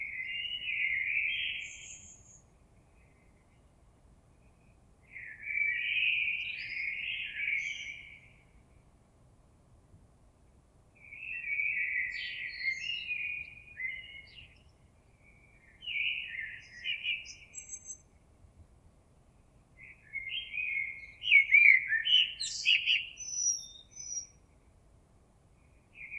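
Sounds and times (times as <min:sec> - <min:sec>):
common blackbird singing fluty phrases: 0:00.0 - 0:03.5, 0:05.1 - 0:08.4, 0:11.0 - 0:18.1, 0:19.8 - 0:24.4, 0:26.0 - 0:26.1.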